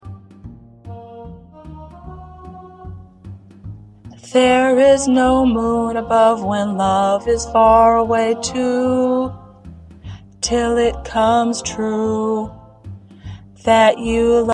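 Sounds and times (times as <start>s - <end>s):
tenor singing: 0.9s - 3.0s, 4.2s - 9.5s, 10.4s - 12.6s.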